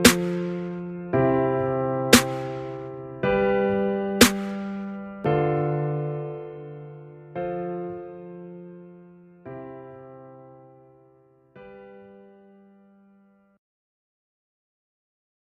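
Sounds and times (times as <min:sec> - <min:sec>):
sad heartbroken hip hop type beat: 0:00.0 - 0:10.6.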